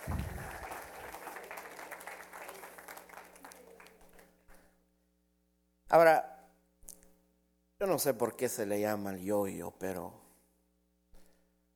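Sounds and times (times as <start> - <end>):
audience applause: 0.0 - 4.2
speech: 5.9 - 6.3, 7.8 - 10.2.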